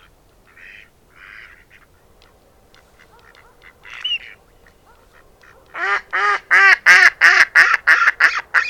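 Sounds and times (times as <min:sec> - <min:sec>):
Mallard quacking: 0:00.0 - 0:08.6.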